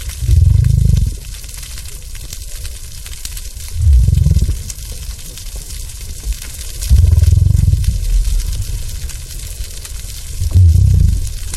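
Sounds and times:
faint crackles: 0:00.0 - 0:11.5
gray whale breaths: 0:00.1 - 0:01.3, 0:03.7 - 0:05.1, 0:06.9 - 0:11.5.

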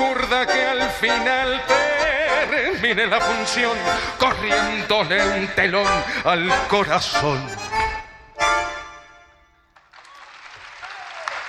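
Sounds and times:
bright sustained instrumental chords: 0:00.0 - 0:09.7
speech: 0:00.3 - 0:01.8, 0:02.4 - 0:07.9
audience applause after a tango: 0:09.8 - 0:11.4.

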